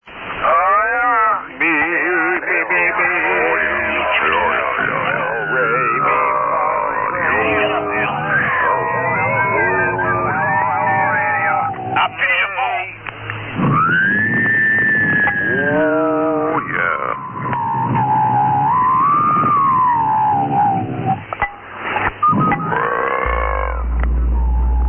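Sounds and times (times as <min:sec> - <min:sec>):
SSB radio net tune-up: 0:00.3 - 0:24.8.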